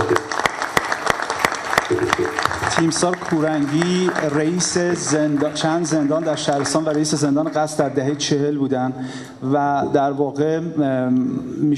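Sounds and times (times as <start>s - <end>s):
audience applause at a film event: 0.0s - 8.0s
speech: 2.7s - 11.7s.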